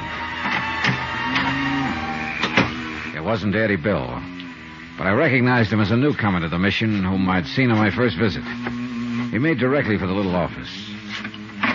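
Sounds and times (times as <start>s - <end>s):
street door opening: 0.0s - 3.1s
speech: 3.3s - 4.3s, 5.0s - 10.9s.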